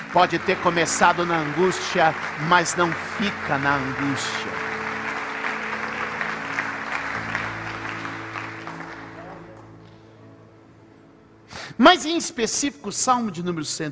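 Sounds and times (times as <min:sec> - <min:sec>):
audience applause: 0:00.0 - 0:09.9
speech: 0:00.1 - 0:04.7, 0:11.8 - 0:13.9.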